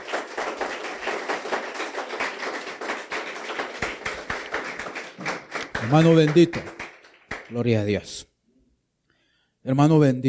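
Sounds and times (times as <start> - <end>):
crowd clapping: 0.0 - 7.8
speech: 5.8 - 6.8, 7.5 - 8.3, 9.6 - 10.2.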